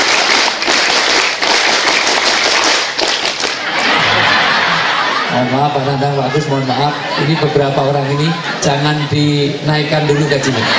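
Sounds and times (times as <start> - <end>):
audience doing rhythmic scout clap routine: 0.0 - 5.2
laughter: 3.3 - 10.7
speech: 5.4 - 10.7.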